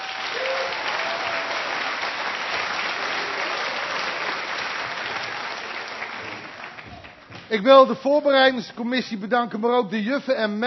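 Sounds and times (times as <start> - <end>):
audience applause: 0.0 - 7.4
speech: 7.5 - 10.6.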